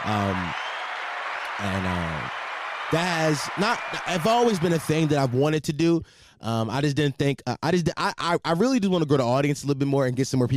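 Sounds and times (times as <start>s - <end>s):
speech: 0.0s - 0.6s, 1.6s - 10.5s
clapping: 0.0s - 5.4s.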